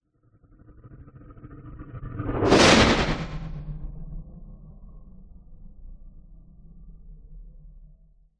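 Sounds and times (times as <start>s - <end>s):
stuttering growl sweep: 1.6s - 3.8s
metallic sweep with flanged tail: 1.9s - 4.0s.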